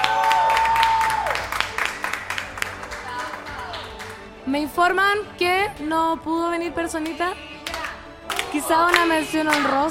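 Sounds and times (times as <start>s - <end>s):
applause: 0.0s - 4.2s, 7.6s - 9.9s
speech: 4.5s - 7.5s, 8.5s - 9.9s.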